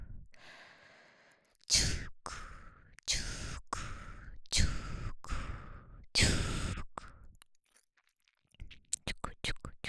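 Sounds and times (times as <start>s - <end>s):
ASMR wet mouth sounds: 1.4s - 5.5s, 6.2s - 9.8s.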